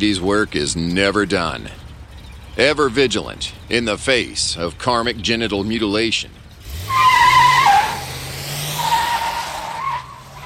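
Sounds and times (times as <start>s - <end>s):
speech: 0.0s - 1.8s, 2.6s - 7.0s
car engine drone: 0.0s - 10.4s
car tire squeal: 6.6s - 10.4s.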